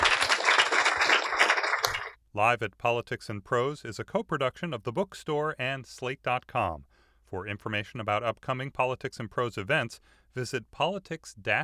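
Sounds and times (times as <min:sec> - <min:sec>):
crowd applauding: 0:00.0 - 0:02.2
speech: 0:02.3 - 0:11.6.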